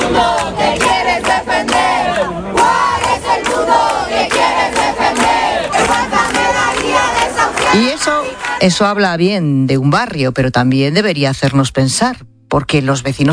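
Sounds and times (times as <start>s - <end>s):
neighbours crowd shouting support: 0.0s - 8.7s
speech: 7.8s - 13.3s.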